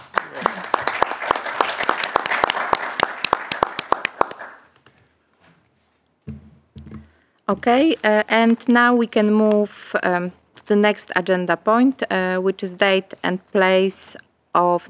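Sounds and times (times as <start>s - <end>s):
group clapping: 0.0s - 4.7s
speech: 7.5s - 14.8s.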